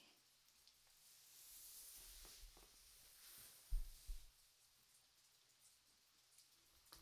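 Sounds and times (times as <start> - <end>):
trial massage sounds: 1.3 - 4.3.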